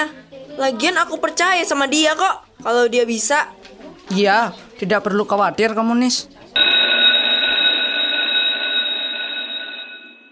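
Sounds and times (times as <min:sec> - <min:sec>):
speech: 0:00.0 - 0:06.7
electric school bell ringing: 0:06.6 - 0:10.3.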